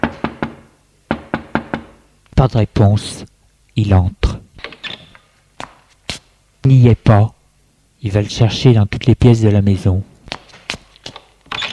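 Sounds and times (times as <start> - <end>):
knocking on a bedroom door: 0.0 - 2.0
speech: 2.4 - 4.4, 6.6 - 7.4, 8.0 - 10.1.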